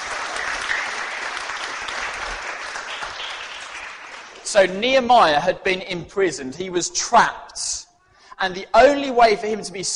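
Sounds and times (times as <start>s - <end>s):
crowd applauding: 0.0s - 4.6s
speech: 4.5s - 7.8s, 8.4s - 9.9s.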